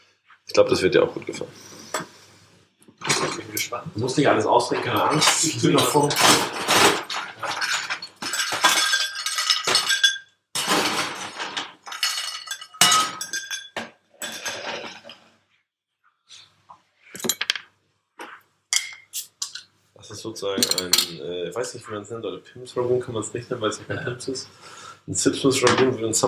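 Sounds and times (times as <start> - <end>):
speech: 0.5 - 1.8, 3.6 - 7.0, 20.4 - 26.2
glass bottles clinking while mixing drinks: 3.0 - 3.8, 4.7 - 15.2, 18.7 - 19.7, 20.6 - 21.2.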